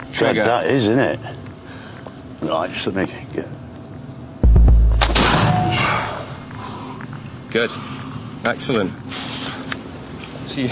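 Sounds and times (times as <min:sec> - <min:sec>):
speech: 0:00.2 - 0:01.5, 0:02.4 - 0:03.6, 0:07.5 - 0:09.4, 0:10.5 - 0:10.7
gun firing a charge at a target: 0:04.4 - 0:06.1.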